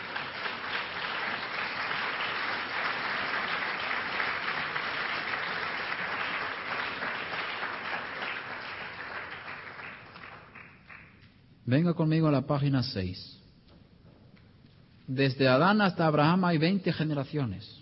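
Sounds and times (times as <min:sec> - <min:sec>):
audience applause: 0:00.0 - 0:11.2
speech: 0:11.7 - 0:13.4, 0:15.1 - 0:17.8.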